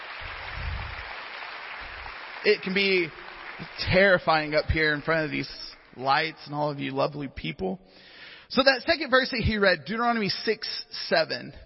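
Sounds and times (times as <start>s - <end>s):
audience applause: 0.0s - 6.0s
speech: 2.4s - 11.6s.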